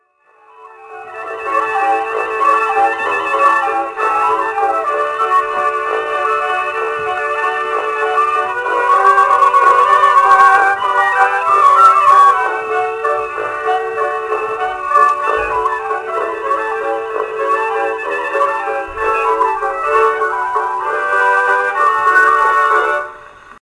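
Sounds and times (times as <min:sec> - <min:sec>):
waltz music: 0:00.0 - 0:23.5.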